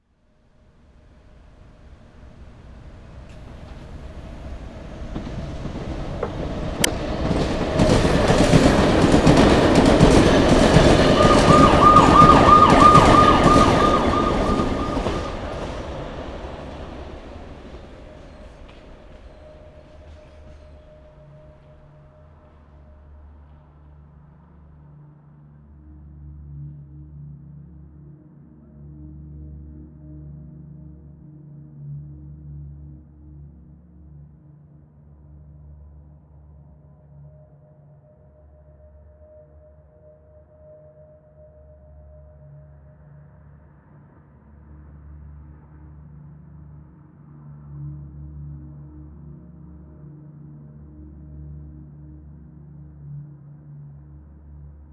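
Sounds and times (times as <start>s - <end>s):
alley ambience: 1.8s - 21.7s.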